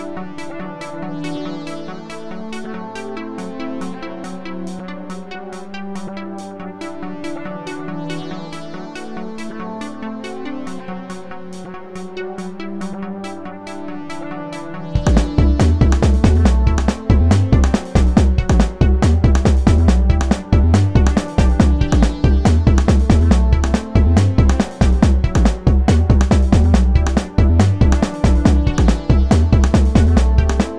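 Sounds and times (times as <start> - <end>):
percussion: 15.0 - 30.7.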